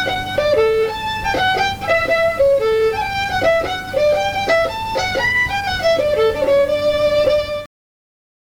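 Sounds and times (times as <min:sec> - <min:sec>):
fiddle tune: 0:00.0 - 0:07.7.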